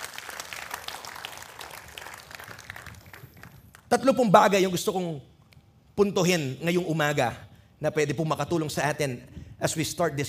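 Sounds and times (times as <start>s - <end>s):
church congregation clapping during a sermon: 0.0s - 3.9s
speech: 3.9s - 5.3s, 6.0s - 10.2s.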